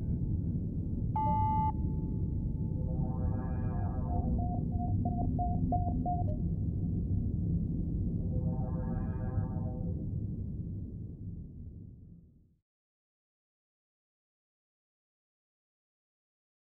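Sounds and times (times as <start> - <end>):
space station bridge ambience: 0.1 - 11.8.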